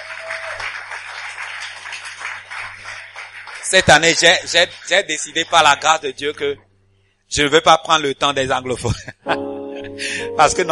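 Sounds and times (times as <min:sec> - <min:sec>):
congregation clapping during a French-language church service: 0:00.0 - 0:06.0
speech: 0:03.7 - 0:06.6, 0:07.3 - 0:10.7.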